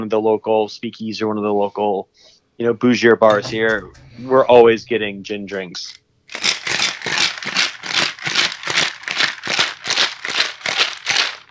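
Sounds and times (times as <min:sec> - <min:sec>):
speech: 0:00.0 - 0:06.5
cocktail shaker rattling while a gin drink is mixed: 0:06.3 - 0:11.4.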